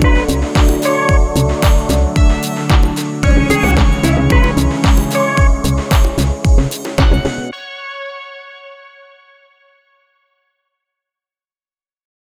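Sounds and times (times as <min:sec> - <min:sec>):
chill house music: 0:00.0 - 0:07.9.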